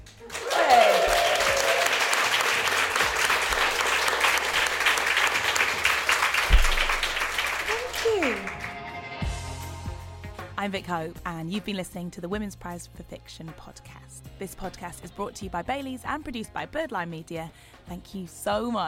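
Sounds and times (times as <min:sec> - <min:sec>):
live audience applause: 0:00.0 - 0:08.8
speech: 0:10.6 - 0:18.8.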